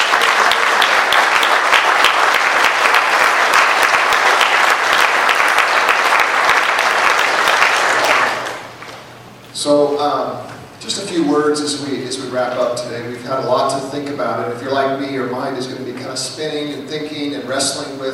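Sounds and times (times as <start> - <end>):
crowd applauding: 0.0 - 9.0
speech: 9.6 - 18.1.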